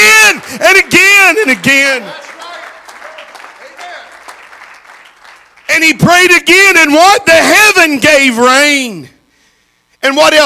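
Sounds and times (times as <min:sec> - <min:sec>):
audience clapping: 0:00.0 - 0:05.9
speech: 0:00.8 - 0:02.2, 0:05.8 - 0:09.2, 0:10.0 - 0:10.4.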